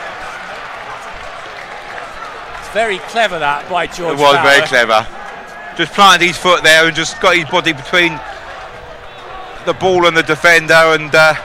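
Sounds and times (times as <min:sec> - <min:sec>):
football crowd cheering: 0:00.0 - 0:11.4
speech: 0:02.8 - 0:05.2, 0:05.8 - 0:08.3, 0:09.6 - 0:11.4.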